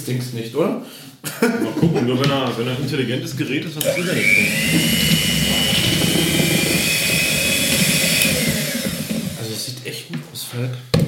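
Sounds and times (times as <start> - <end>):
speech: 0.0 - 6.4, 10.5 - 10.9
laughter: 1.3 - 2.5
electric hand mixer running: 3.8 - 9.6.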